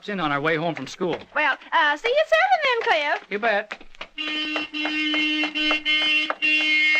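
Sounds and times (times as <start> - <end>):
speech: 0.0 - 6.9
car horn honking: 4.2 - 6.9.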